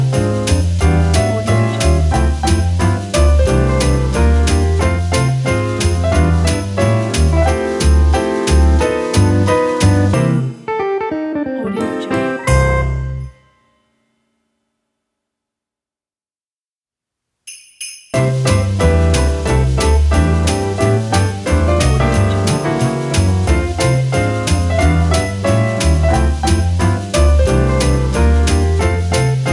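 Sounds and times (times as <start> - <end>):
christmas jazz music: 0.0 - 13.7, 17.5 - 29.5.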